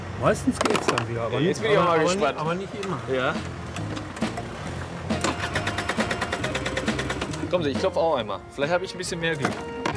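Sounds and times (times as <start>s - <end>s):
speech: 0.2s - 4.0s, 7.5s - 9.8s
scooter engine cranking without catching: 2.8s - 7.5s.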